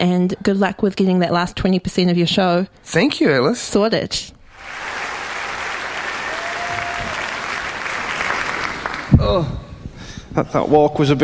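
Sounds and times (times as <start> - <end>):
speech: 0.0 - 4.8, 9.2 - 9.6, 10.3 - 11.2
audience applause: 4.5 - 9.2.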